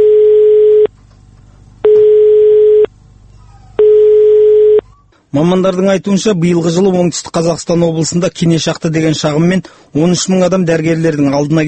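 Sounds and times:
telephone line tones from an unanswered call to the Otyrar district hospital: 0.0 - 0.9, 1.8 - 2.9, 3.8 - 4.8
speech: 5.4 - 11.6.

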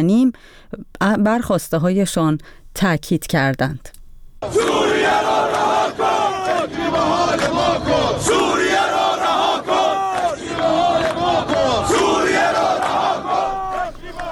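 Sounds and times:
speech: 0.0 - 5.2
Ahvaz National Steel Group workers chanting slogans at a protest in front of the governor's office: 4.4 - 14.2.

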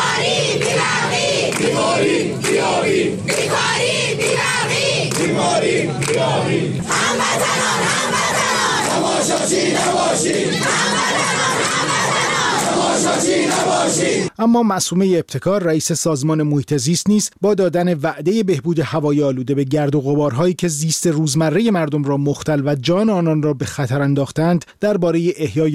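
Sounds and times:
street protest crowd chanting: 0.0 - 14.3
speech: 9.5 - 25.7.

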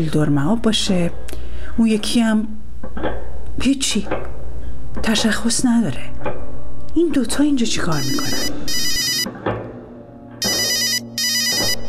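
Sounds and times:
speech: 0.0 - 4.3, 5.0 - 6.4, 7.0 - 8.8
telephone ringing with electronic trills: 7.9 - 9.3, 10.4 - 11.8.

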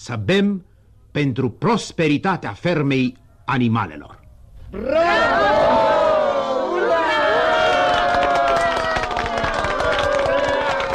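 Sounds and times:
speech: 0.0 - 5.8
crowd cheering: 4.8 - 10.9
crowd clapping: 7.4 - 10.9.

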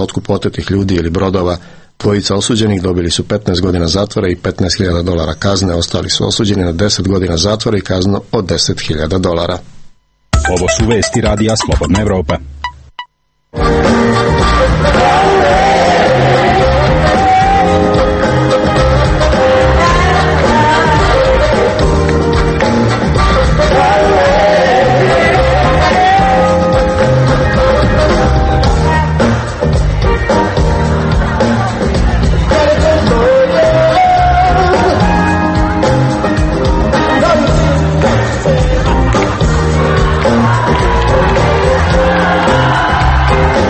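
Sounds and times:
speech: 0.0 - 9.8, 10.4 - 12.6
live concert music at Kalemegdan in Belgrade: 10.3 - 43.6.

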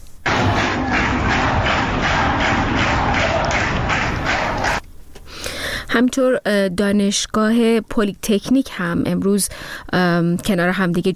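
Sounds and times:
students clapping on the Technical University campus: 0.3 - 4.8
speech: 5.9 - 11.1.

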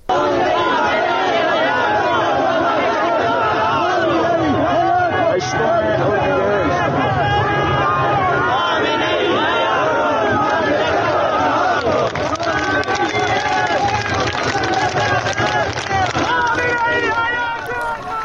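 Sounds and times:
protest crowd chanting slogans: 0.0 - 18.2.

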